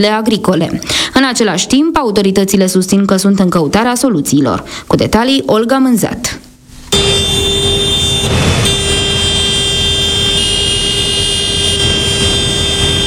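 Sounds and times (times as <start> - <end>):
speech: 0.0 - 7.5
tractor horns honking at a protest in Fălești: 6.9 - 13.0.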